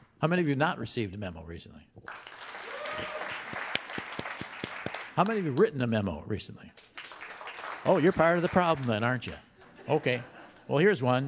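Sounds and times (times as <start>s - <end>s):
speech: 0.2s - 2.4s, 5.2s - 6.9s, 7.8s - 11.2s
audience applause during a talk on office memos: 2.0s - 5.9s, 6.8s - 9.4s.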